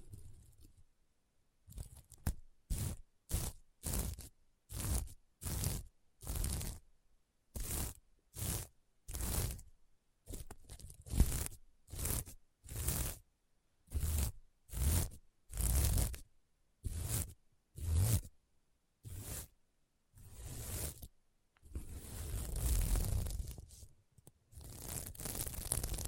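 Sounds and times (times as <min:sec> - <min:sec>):
scratching on a sequin mermaid pillow: 0:01.7 - 0:06.8, 0:07.5 - 0:09.7, 0:10.3 - 0:13.2, 0:13.9 - 0:18.3, 0:19.0 - 0:19.6, 0:20.2 - 0:21.1, 0:21.7 - 0:23.9, 0:24.5 - 0:26.0.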